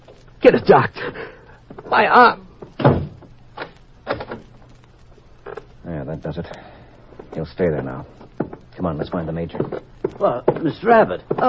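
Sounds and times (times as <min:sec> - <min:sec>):
speech: 0:00.4 - 0:03.0, 0:06.1 - 0:06.7, 0:07.4 - 0:08.2, 0:08.8 - 0:11.4
door with a keypad lock thudding shut: 0:02.8 - 0:03.3.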